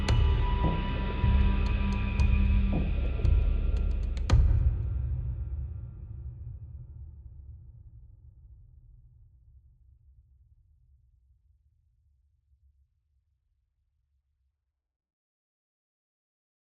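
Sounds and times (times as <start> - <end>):
high tension music: 0.0 - 5.4.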